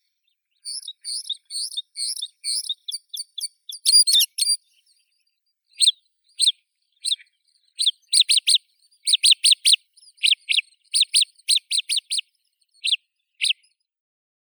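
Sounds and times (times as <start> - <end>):
white-winged lark Melanocorypha leucoptera singing: 0.0 - 4.9, 5.8 - 12.2.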